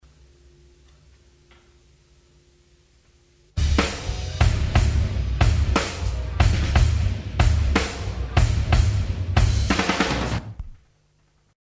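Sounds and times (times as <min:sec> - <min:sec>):
drum outtakes: 0:03.6 - 0:10.7.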